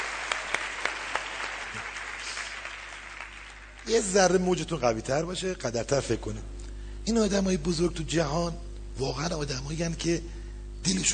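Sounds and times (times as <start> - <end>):
applause from a crowd: 0.0 - 4.2
speech: 3.9 - 11.1.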